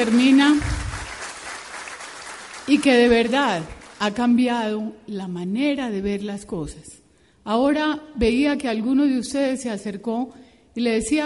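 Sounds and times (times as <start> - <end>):
speech: 0.0 - 0.8, 2.7 - 11.2
audience applause: 0.0 - 4.0
low rumble: 0.6 - 1.1.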